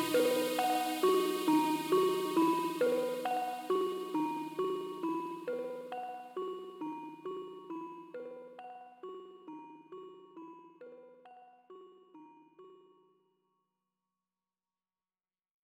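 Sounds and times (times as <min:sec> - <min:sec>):
bells ringing: 0:00.0 - 0:10.5.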